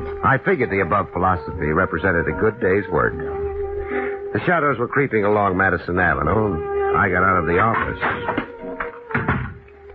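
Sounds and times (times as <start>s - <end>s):
speech: 0.3s - 8.4s
office door being closed and locked: 9.1s - 9.6s.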